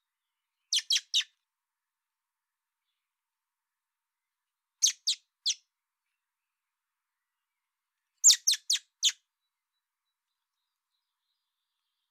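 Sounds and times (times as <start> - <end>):
common blackbird clicking calls: 0.7 - 1.3, 8.2 - 9.2.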